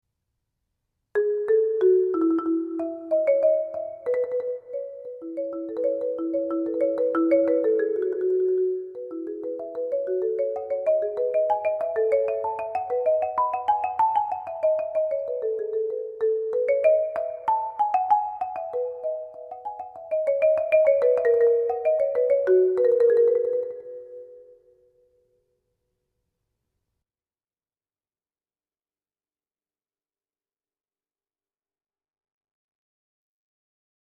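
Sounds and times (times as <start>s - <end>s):
keyboard: 1.2s - 24.8s.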